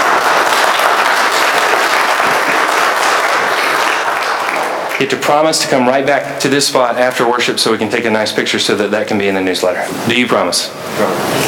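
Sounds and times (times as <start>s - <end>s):
congregation clapping to welcome new church members: 0.0s - 7.5s
speech: 5.0s - 11.4s.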